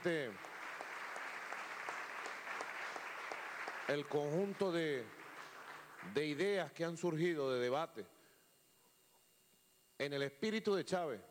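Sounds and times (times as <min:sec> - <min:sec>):
speech: 0:00.0 - 0:00.5, 0:03.9 - 0:05.2, 0:06.0 - 0:08.1, 0:10.0 - 0:11.2
faint assembly crowd applause: 0:00.0 - 0:06.5.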